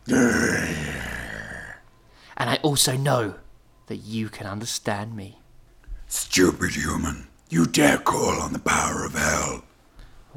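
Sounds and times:
person growling imitating a demon: 0.0 - 1.8
speech: 2.4 - 5.4, 6.1 - 9.7.

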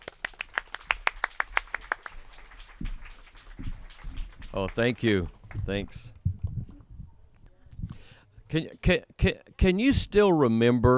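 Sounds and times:
audience applause welcoming a storyteller at a 2017 storytelling festival: 0.0 - 6.0
speech: 4.6 - 6.2, 8.5 - 10.9.

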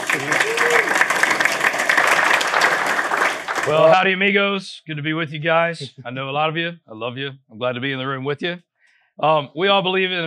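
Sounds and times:
crowd clapping: 0.0 - 4.0
speech: 0.1 - 0.9, 3.7 - 10.2.

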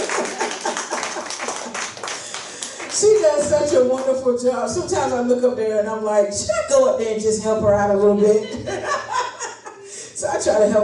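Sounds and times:
laughter: 0.0 - 2.6, 8.2 - 10.1
audience round of applause: 0.0 - 3.4
speech: 3.0 - 9.1, 10.5 - 10.8.

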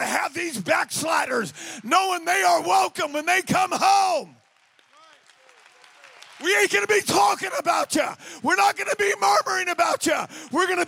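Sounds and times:
speech: 0.4 - 4.4, 6.4 - 10.8
crowd clapping hands: 3.7 - 10.8.

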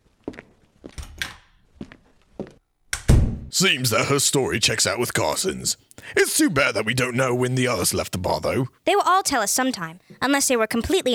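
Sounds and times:
footsteps walking away: 0.0 - 2.6
speech: 3.6 - 11.1.

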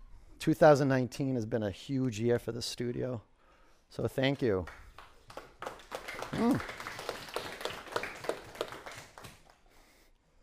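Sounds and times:
speech: 0.4 - 3.3, 3.9 - 4.8, 6.3 - 6.8
people clapping: 4.3 - 9.9.

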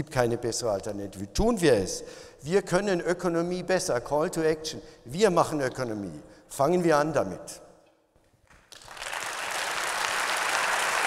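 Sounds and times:
speech: 0.0 - 7.6
applause: 8.6 - 11.0.

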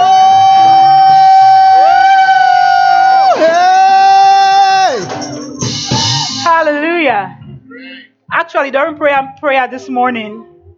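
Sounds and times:
audience shouting and whooping: 0.0 - 6.5
speech: 8.5 - 10.5.

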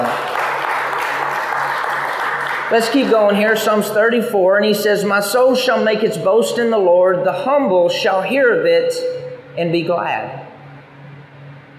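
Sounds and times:
audience applause: 0.0 - 3.3
speech: 2.7 - 10.4.

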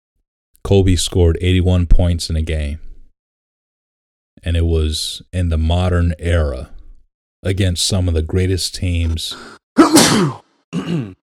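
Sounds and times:
speech: 0.7 - 2.8, 4.4 - 6.8, 7.4 - 11.2
person sneezing: 9.8 - 11.2.

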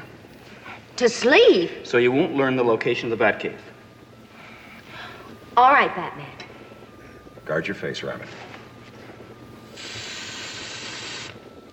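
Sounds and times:
speech: 1.0 - 3.7, 5.6 - 6.4, 7.5 - 8.4
gas spray hissing: 9.7 - 11.4.

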